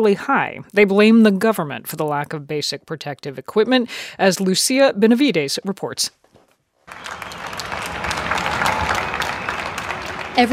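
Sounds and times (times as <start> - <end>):
speech: 0.0 - 6.2, 10.4 - 10.5
people in Spain applauding from windows and balconies: 6.9 - 10.5.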